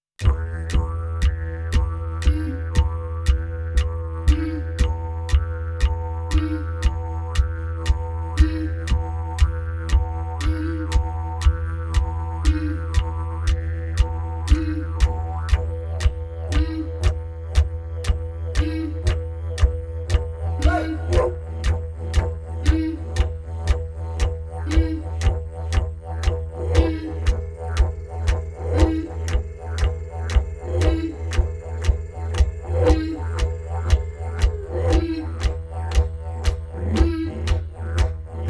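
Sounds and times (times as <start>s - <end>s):
Australian ethnic music: 0.2s - 38.4s.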